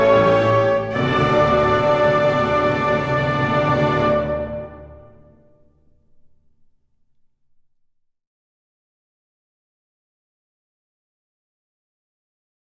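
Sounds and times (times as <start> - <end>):
national anthem: 0.0 - 5.6.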